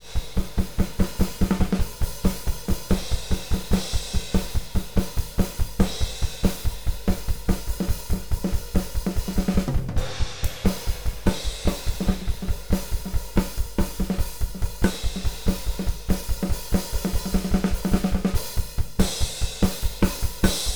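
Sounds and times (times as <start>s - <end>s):
drums: 0.0s - 20.7s.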